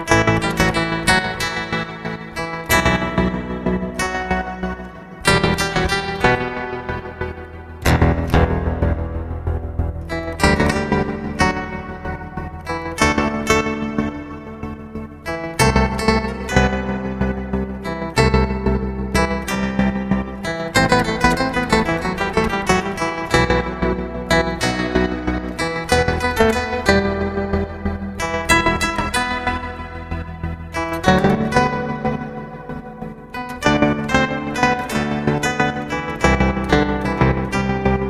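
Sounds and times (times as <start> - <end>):
meditative guitar improvisation: 0.0 - 38.0.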